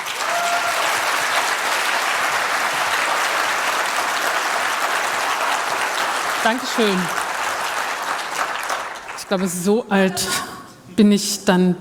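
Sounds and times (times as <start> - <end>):
audience applause: 0.0 - 9.4
speech: 6.4 - 7.2, 9.3 - 11.7.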